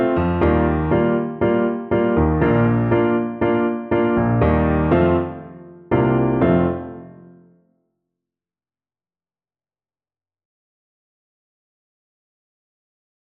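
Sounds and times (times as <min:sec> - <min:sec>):
piano: 0:00.0 - 0:07.6.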